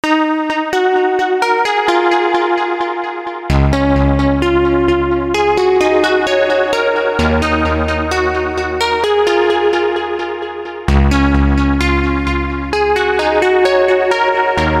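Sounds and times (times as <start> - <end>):
arpeggiated synth: 0.0 - 14.7.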